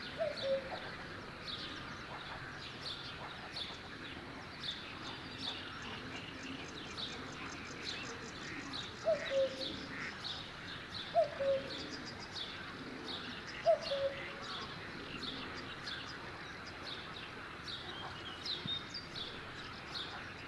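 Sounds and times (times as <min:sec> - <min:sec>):
cuckoo calling: 0:00.0 - 0:01.0, 0:08.6 - 0:09.9, 0:11.1 - 0:12.2, 0:13.6 - 0:14.4
other birds chirping softly: 0:00.1 - 0:20.4.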